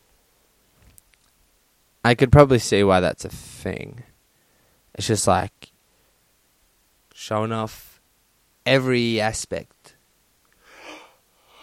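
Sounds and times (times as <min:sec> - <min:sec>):
speech: 0:02.0 - 0:04.1, 0:05.0 - 0:05.7, 0:07.2 - 0:07.9, 0:08.6 - 0:09.8
person yawning: 0:10.7 - 0:11.6.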